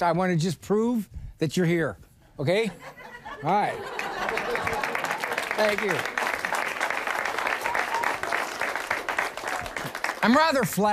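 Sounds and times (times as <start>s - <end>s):
speech: 0.0s - 4.9s, 5.6s - 6.2s, 10.2s - 10.9s
laughter: 2.7s - 6.5s
crowd applause: 3.8s - 10.7s.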